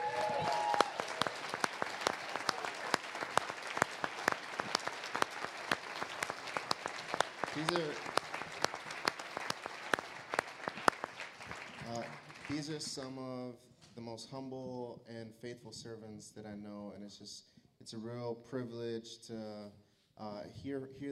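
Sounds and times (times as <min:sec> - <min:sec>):
audience round of applause for a panel: 0:00.0 - 0:13.0
speech: 0:12.6 - 0:21.1.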